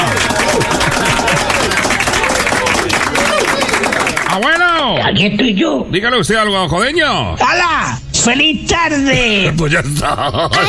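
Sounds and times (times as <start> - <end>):
laughter: 0.0 - 4.2, 9.6 - 10.6
audience applause: 0.0 - 5.0
speech: 5.2 - 10.6.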